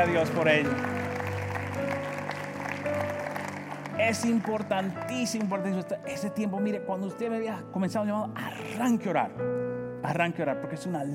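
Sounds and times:
speech: 0.0 - 1.0, 4.0 - 11.1
audience applause: 0.0 - 5.8.

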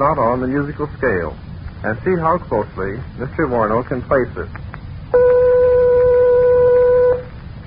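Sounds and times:
speech: 0.0 - 5.3
test tone one eighth of an octave above B natural: 5.1 - 7.3.

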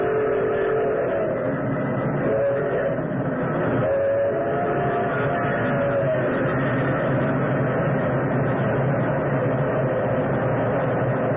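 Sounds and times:
express train engine roaring out of tunnel: 0.0 - 11.3.

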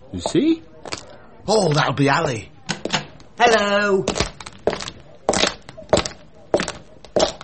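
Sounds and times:
speech: 0.2 - 0.7, 1.5 - 2.5, 3.4 - 4.2
footsteps sound effect: 2.8 - 7.4.

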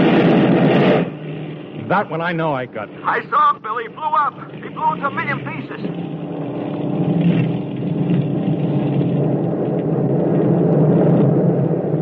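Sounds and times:
aircraft engines droning: 0.0 - 12.0
speech: 1.9 - 6.2.

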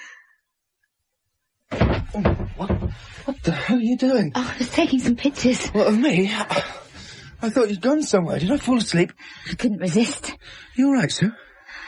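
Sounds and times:
door slamming shut: 1.7 - 3.0
speech: 2.1 - 11.4.

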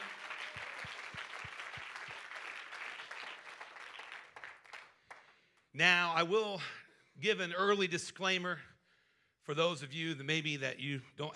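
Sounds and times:
audience clapping hands: 0.0 - 5.7
speech: 5.8 - 8.7, 9.5 - 11.3.

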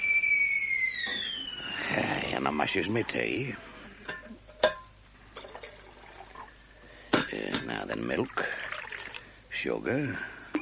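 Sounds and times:
kettle whistling on the gas: 0.0 - 2.8
speech: 2.5 - 4.3, 7.7 - 8.6, 9.6 - 10.4.

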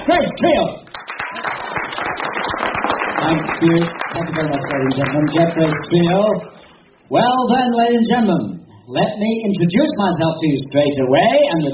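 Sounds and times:
speech: 0.1 - 0.8, 3.2 - 6.5, 7.1 - 11.7
audience applause on a cruise for a musical trio: 0.9 - 6.5.

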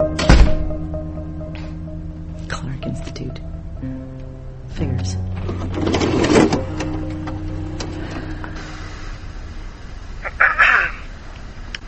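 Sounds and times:
door being shut: 0.2 - 0.7, 5.4 - 8.3
speech: 2.8 - 4.0, 5.0 - 5.2.

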